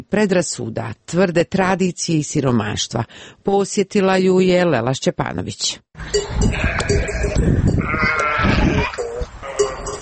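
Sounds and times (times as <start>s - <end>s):
speech: 0.0s - 8.1s
flock of sheep bleating in Montenegro: 6.4s - 10.0s.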